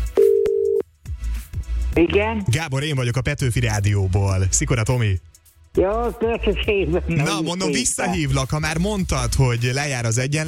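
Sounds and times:
telephone dialing beep: 0.2s - 0.8s
speech: 1.9s - 10.4s.

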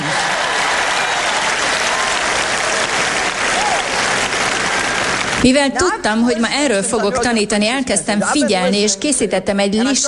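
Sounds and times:
audience applause: 0.0s - 5.7s
speech: 5.4s - 10.0s.

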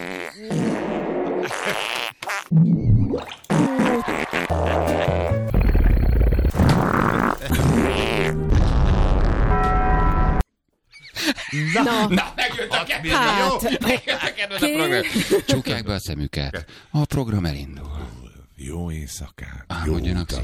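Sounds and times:
fart sound effects: 0.0s - 10.4s
grunt sound effects: 3.5s - 8.8s
laughter: 11.2s - 15.8s
speech: 11.6s - 18.0s, 18.6s - 20.4s.

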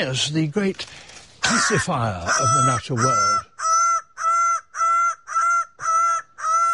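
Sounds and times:
speech: 0.0s - 3.5s
bird of paradise calling: 1.4s - 6.7s.

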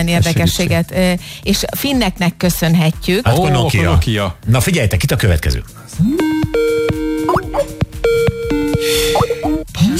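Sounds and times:
speech: 0.0s - 6.7s
electronic dialing tone of an outgoing internet call: 6.2s - 9.6s
bubbly plopping blips: 7.3s - 7.7s.

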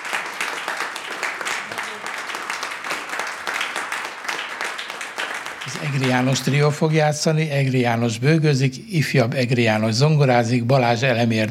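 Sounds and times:
audience applause: 0.0s - 7.0s
speech: 5.7s - 11.4s.

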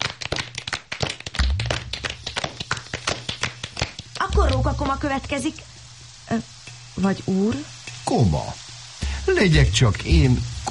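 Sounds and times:
applause: 0.0s - 4.4s
speech: 4.4s - 5.7s, 6.3s - 8.6s, 9.2s - 10.6s.

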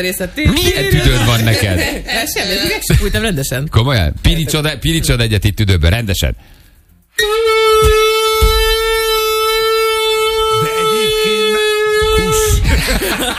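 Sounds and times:
speech: 0.0s - 6.6s, 7.2s - 7.9s
laughter: 0.5s - 3.3s, 10.3s - 13.3s
ship horn blast: 7.2s - 12.7s.

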